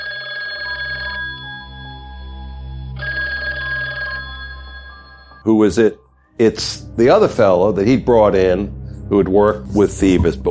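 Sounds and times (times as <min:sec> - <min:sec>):
telephone ringing: 0:00.0 - 0:05.5
speech: 0:05.4 - 0:10.4.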